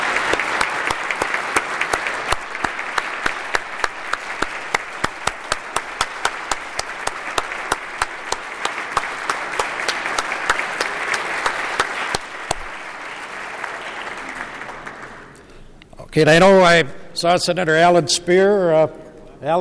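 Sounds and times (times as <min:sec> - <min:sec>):
audience round of applause: 0:00.0 - 0:15.8
speech: 0:16.2 - 0:19.6.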